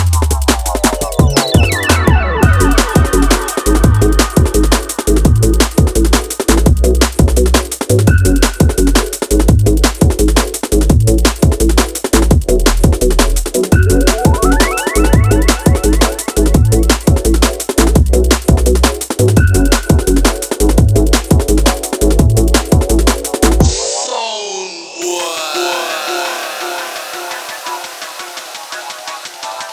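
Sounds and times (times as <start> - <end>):
breakbeat drums: 0.0 - 23.8, 25.0 - 29.7
wobbling siren: 14.0 - 16.8, 25.0 - 29.7.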